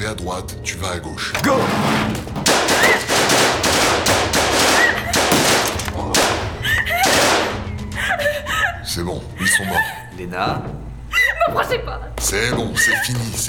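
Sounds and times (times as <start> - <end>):
speech: 0.1 - 3.0, 9.0 - 13.4
machine gun fire in a radio drama shootout: 2.4 - 7.7
laughter: 4.6 - 13.4.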